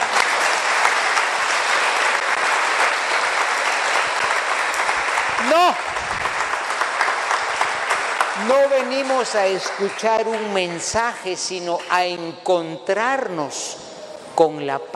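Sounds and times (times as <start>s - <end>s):
audience applause: 0.0s - 10.5s
speech: 8.5s - 14.9s.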